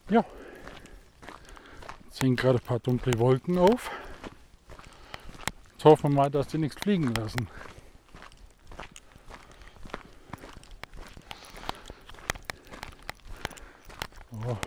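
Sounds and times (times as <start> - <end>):
footsteps of a person walking along a forest edge: 0.0 - 14.6
speech: 0.1 - 0.5, 2.2 - 4.0, 5.8 - 7.7.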